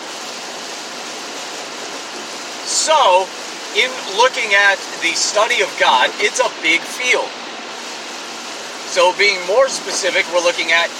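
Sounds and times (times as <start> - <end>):
rain while driving: 0.0 - 10.9
speech: 2.9 - 7.4, 9.0 - 10.9.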